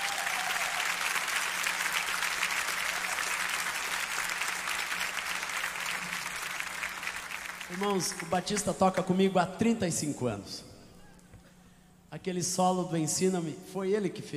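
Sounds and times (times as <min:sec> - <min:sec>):
audience applause: 0:00.0 - 0:08.7
speech: 0:07.7 - 0:10.7, 0:12.2 - 0:14.3.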